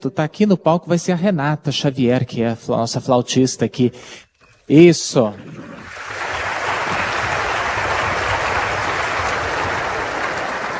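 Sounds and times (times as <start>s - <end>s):
speech: 0.0s - 6.2s
audience applause: 5.5s - 10.7s.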